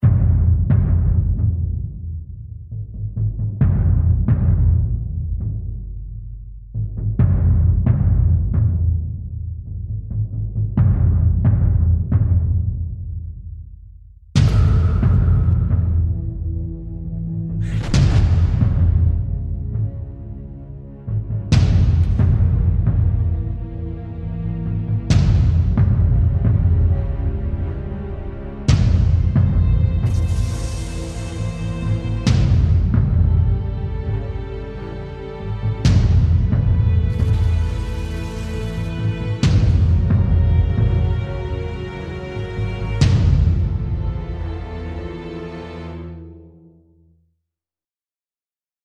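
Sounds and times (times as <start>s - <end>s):
suspenseful waiting music for a drama series: 0.0s - 47.1s.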